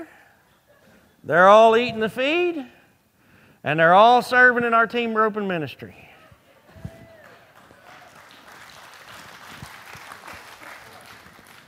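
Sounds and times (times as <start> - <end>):
speech: 1.2 - 2.8, 3.6 - 6.0
audience applause: 7.2 - 11.6.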